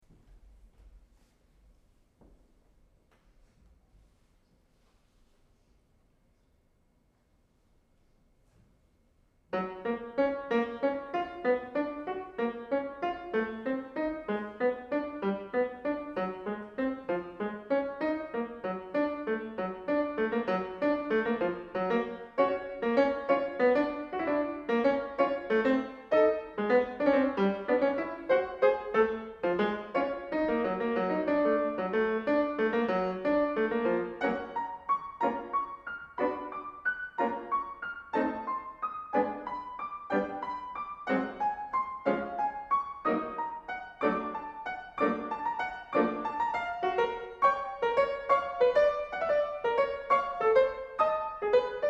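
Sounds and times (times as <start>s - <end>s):
piano: 0.0s - 51.8s.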